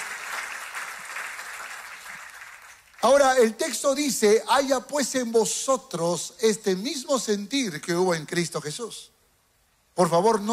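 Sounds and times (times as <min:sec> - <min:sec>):
audience applauding: 0:00.0 - 0:03.2
speech: 0:03.0 - 0:09.2, 0:10.0 - 0:10.5.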